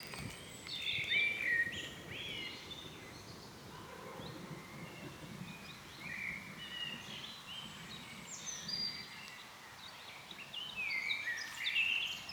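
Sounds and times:
songbirds chirping and twittering: 0.0s - 12.3s.

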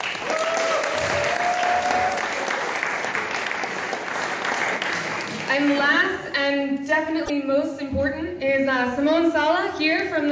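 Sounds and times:
crowd cheering: 0.0s - 5.5s
audience applause: 0.0s - 5.8s
speech: 5.6s - 10.3s.

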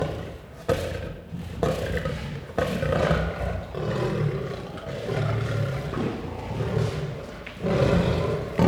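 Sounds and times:
lion growling: 1.8s - 8.6s.

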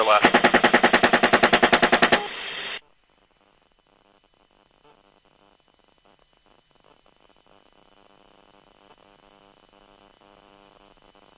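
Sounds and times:
automatic gunfire: 0.2s - 2.2s.

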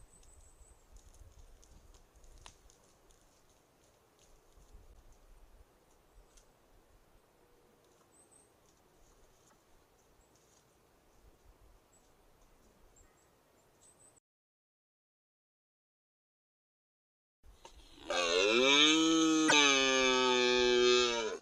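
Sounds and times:
rutting red deer bellowing: 17.7s - 21.3s.

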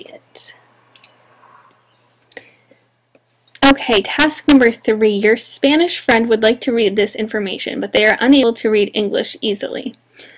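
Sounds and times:
low steady hum: 0.0s - 10.3s
mouse clicks opening articles on a web page: 1.0s - 1.2s
speech: 3.7s - 10.0s.

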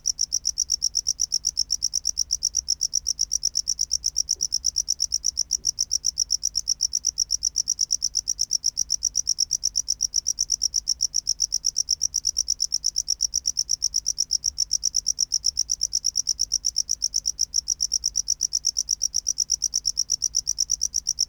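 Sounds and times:
tropical house cricket chirping: 0.0s - 21.2s.

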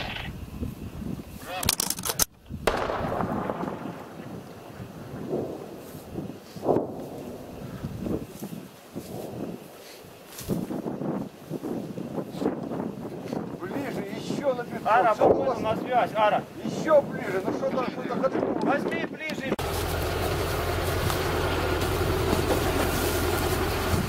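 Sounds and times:
wind noise: 0.0s - 19.7s, 20.8s - 24.0s
low roar: 0.0s - 24.0s
gunfire blasts: 2.6s - 5.8s
speech: 15.0s - 19.5s.

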